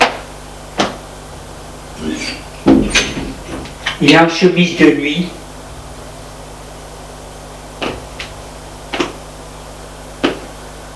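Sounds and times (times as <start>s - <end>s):
door opening as someone enters: 2.0s - 4.0s
speech: 4.0s - 5.4s.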